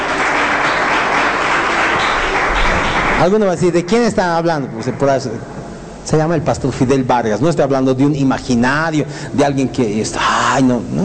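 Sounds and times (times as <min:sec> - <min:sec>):
audience applause: 0:00.0 - 0:03.6
speech: 0:03.2 - 0:11.0.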